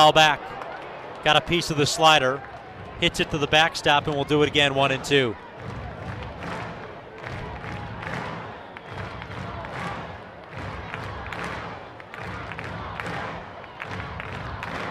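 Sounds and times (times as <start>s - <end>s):
baseball stadium crowd cheering during a tense game: 0.0s - 14.8s
speech: 0.1s - 0.6s, 1.2s - 5.8s.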